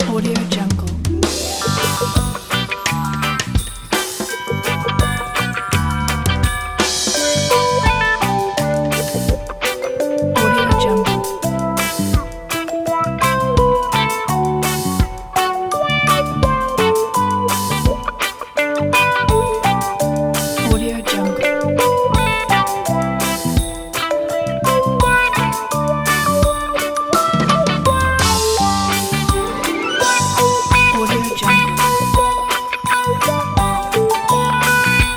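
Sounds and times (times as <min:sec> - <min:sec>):
reggae festive song: 0:00.0 - 0:35.1.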